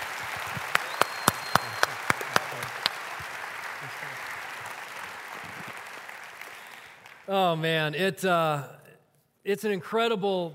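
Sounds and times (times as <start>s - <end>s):
church congregation applauding: 0.0s - 7.9s
speech: 7.3s - 8.8s, 9.5s - 10.5s.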